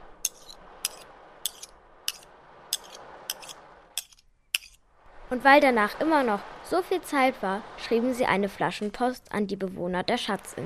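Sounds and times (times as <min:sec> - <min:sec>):
metal scraping of pirates cleaning their sabres: 0:00.2 - 0:04.8
speech: 0:05.3 - 0:10.6.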